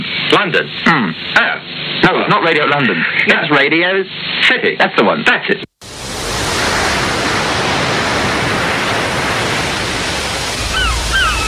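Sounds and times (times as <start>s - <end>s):
speech: 0.3s - 5.7s
surf rushing: 5.8s - 11.4s
seagulls crying: 10.3s - 11.4s.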